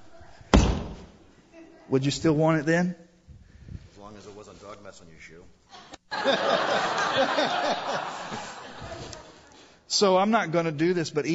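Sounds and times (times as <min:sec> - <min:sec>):
foot stomping on a banknote: 0:00.5 - 0:01.2
speech: 0:01.9 - 0:03.1, 0:04.7 - 0:08.5, 0:09.9 - 0:11.3
laughter: 0:05.8 - 0:09.4.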